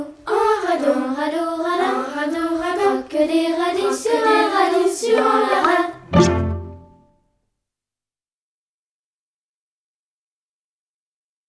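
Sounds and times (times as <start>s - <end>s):
vocal version: 0.0s - 7.0s.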